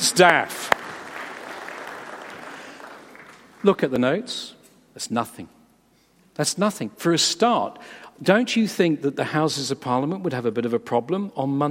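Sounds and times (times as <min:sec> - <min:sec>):
audience applause: 0:00.0 - 0:03.9
speech: 0:00.1 - 0:00.6, 0:03.6 - 0:05.6, 0:06.4 - 0:11.6.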